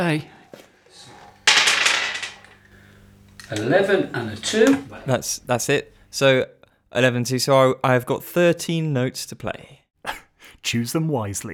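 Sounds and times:
speech: 0:00.0 - 0:00.3, 0:03.5 - 0:11.5
two twelve-sided dice clattering: 0:01.4 - 0:02.6.

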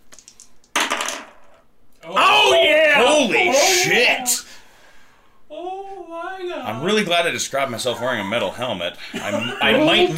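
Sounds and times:
two dice being rolled: 0:00.0 - 0:01.6
speech: 0:03.2 - 0:04.5, 0:06.8 - 0:10.1.

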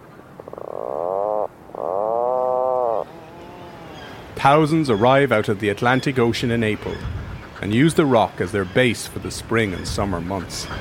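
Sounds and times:
Atlantic puffin groaning calls: 0:00.3 - 0:04.3
speech: 0:04.4 - 0:10.7.

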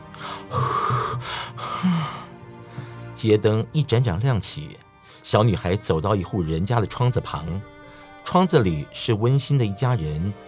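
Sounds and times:
breath blown out onto freezing hands: 0:00.1 - 0:03.1
speech: 0:03.2 - 0:10.4.

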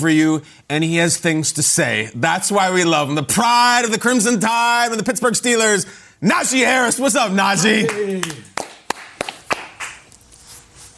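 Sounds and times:
speech: 0:00.0 - 0:08.5
person clapping for himself: 0:07.8 - 0:10.1.

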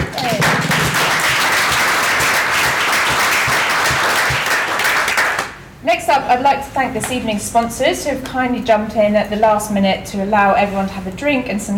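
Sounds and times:
audience applause: 0:00.0 - 0:05.5
speech: 0:06.1 - 0:11.7.

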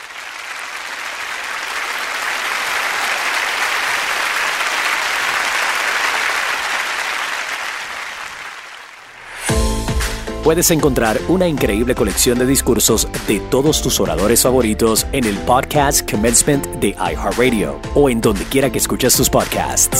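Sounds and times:
audience applause: 0:00.0 - 0:09.5
speech: 0:10.5 - 0:19.9.

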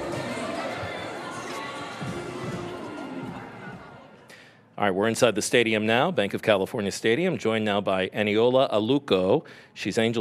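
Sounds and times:
crowd murmur outside stadium at pride night: 0:00.0 - 0:04.8
faint music-like tones: 0:00.0 - 0:10.1
speech: 0:04.8 - 0:10.1.

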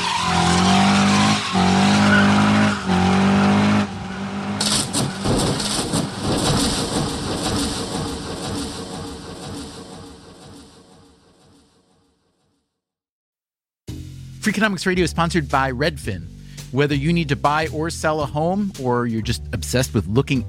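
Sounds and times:
race cars skidding: 0:00.0 - 0:07.6
race cars crashing: 0:00.0 - 0:11.5
speech: 0:14.5 - 0:20.4.

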